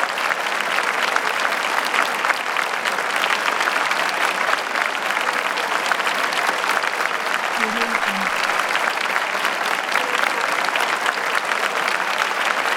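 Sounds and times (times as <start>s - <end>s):
theater audience applause: 0.0s - 12.7s.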